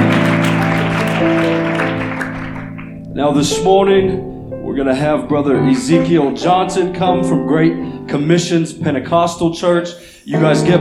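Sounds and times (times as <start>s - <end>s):
audience hand clapping: 0.0s - 3.0s
speech: 3.2s - 10.7s.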